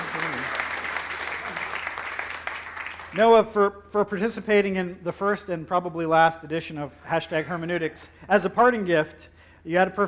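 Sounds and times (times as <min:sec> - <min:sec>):
audience applause for a contestant: 0:00.0 - 0:03.2
speech: 0:03.1 - 0:10.0.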